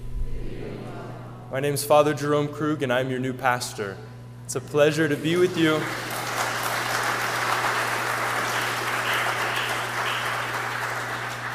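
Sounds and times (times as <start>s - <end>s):
faint low hum: 0.0s - 11.5s
speech: 1.5s - 6.1s
crowd applauding: 5.1s - 11.5s.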